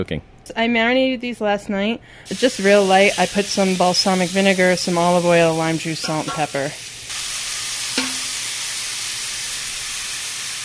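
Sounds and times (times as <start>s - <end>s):
speech: 0.0s - 6.9s
balsamic-marinated flank steak sizzling as it pan-sears on a stove: 2.3s - 10.6s.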